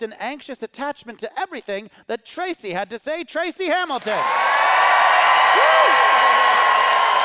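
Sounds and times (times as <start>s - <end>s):
speech: 0.0s - 4.7s, 5.6s - 6.4s
crowd applauding: 4.0s - 7.2s
rising-and-falling whoop or whistle: 4.5s - 7.2s.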